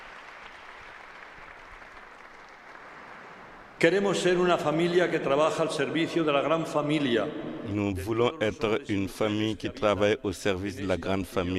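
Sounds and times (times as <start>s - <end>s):
applause in a cathedral: 0.0s - 3.8s
speech: 3.8s - 11.5s.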